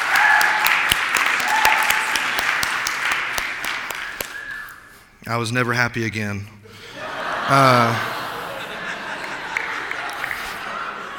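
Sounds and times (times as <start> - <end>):
audience clapping: 0.0 - 4.6, 9.0 - 11.1
speech: 5.3 - 6.6, 7.5 - 8.1
laughter: 6.7 - 11.1.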